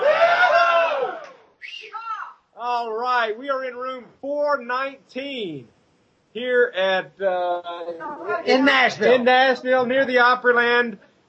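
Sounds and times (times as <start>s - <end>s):
audience giving a rebel yell at a 2010 board meeting in Nashville, Tennessee: 0.0s - 2.2s
speech: 2.7s - 11.1s.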